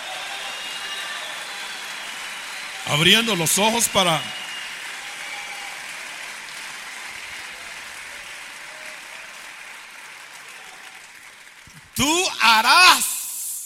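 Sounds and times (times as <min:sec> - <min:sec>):
audience applause: 0:00.0 - 0:13.4
speech: 0:02.9 - 0:04.4.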